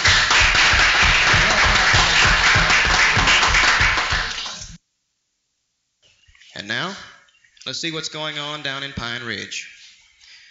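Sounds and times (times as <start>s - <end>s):
audience applause: 0.0s - 4.8s
speech: 7.7s - 9.8s.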